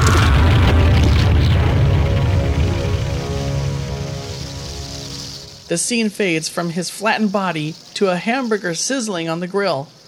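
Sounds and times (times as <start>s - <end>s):
massive boulder crashing down: 0.0s - 3.0s
speech: 5.7s - 10.0s.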